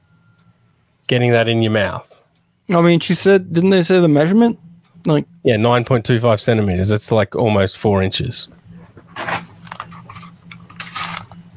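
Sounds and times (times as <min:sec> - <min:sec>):
low hum: 0:00.0 - 0:11.5
speech: 0:01.1 - 0:02.1, 0:02.7 - 0:08.6
tape measure pulled out: 0:09.2 - 0:11.4.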